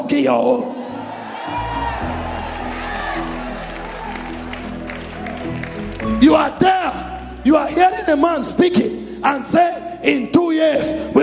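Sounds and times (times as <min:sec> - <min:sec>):
speech: 0:00.1 - 0:00.8, 0:06.1 - 0:11.2
audience clapping and cheering: 0:01.1 - 0:07.4.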